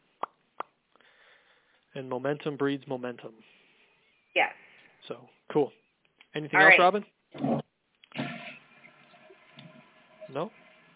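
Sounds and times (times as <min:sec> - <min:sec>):
speech: 0:02.0 - 0:03.6, 0:04.4 - 0:07.6, 0:10.3 - 0:10.6
toilet flushing: 0:07.5 - 0:10.9.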